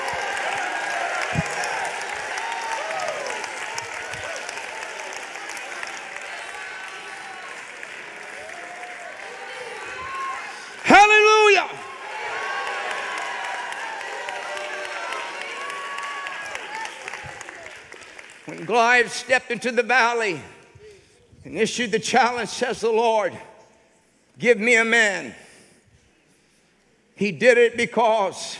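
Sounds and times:
loud high sustained shout: 0.0s - 17.8s
audience roaring and applauding: 0.0s - 19.3s
speech: 18.8s - 20.6s, 21.5s - 23.5s, 24.4s - 25.4s, 27.2s - 28.5s.

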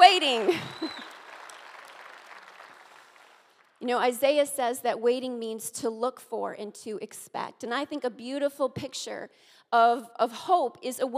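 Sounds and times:
audience clapping: 0.0s - 3.8s
speech: 3.8s - 11.1s.

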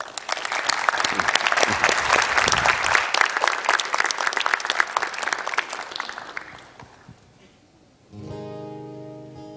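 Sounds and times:
audience applause welcoming two musicians at a church gathering: 0.0s - 7.1s.

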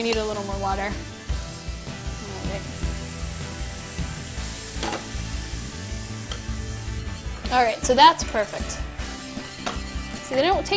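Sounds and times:
speech: 0.0s - 1.2s, 7.5s - 8.9s, 10.3s - 10.7s
onions frying in bacon fat: 0.0s - 8.8s
utensil scraping a pan while stirring: 6.9s - 10.7s.

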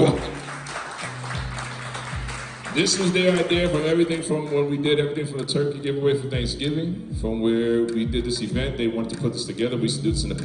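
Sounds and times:
audience applause: 0.0s - 4.3s
speech: 2.8s - 10.4s.

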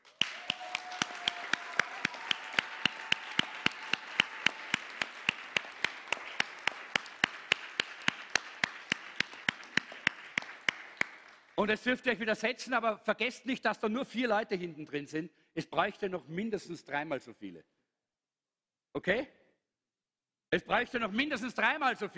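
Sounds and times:
rhythmic audience clapping: 0.0s - 12.0s
speech: 11.6s - 17.8s, 18.9s - 19.4s, 20.5s - 22.1s.

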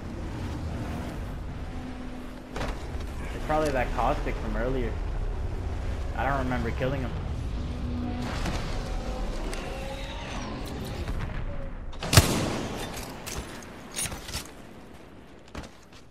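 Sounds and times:
low Apex Legends game hum: 0.0s - 16.0s
speech: 3.5s - 5.1s, 6.2s - 7.2s
gunfire in the video game Apex Legends: 12.0s - 13.6s.

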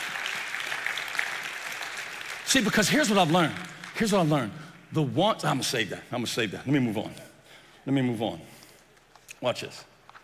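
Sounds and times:
audience hand clapping: 0.0s - 4.8s
speech: 2.5s - 8.5s, 9.4s - 9.9s.

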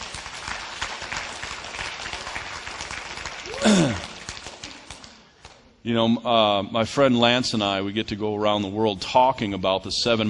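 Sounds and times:
audience applause: 0.0s - 5.2s
speech: 5.8s - 10.2s.

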